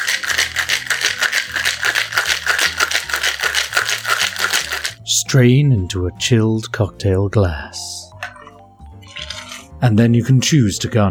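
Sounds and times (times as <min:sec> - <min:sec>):
cocktail shaker shaken with ice: 0:00.0 - 0:05.0
low musical bassline: 0:00.0 - 0:11.0
speech: 0:05.3 - 0:07.9, 0:09.8 - 0:11.0.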